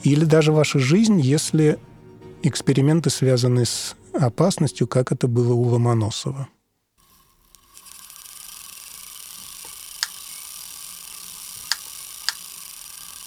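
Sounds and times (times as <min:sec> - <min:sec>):
speech: 0:00.0 - 0:06.6
electrophorus Wimshurst machine running, making sparks: 0:07.0 - 0:13.2.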